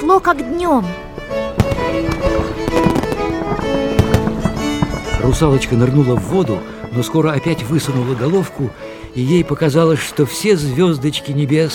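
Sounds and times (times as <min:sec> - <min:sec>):
speech: 0:00.1 - 0:03.0, 0:05.2 - 0:11.7
steady humming tonal backdrop: 0:00.9 - 0:05.7
fireworks popping and banging: 0:01.5 - 0:09.2.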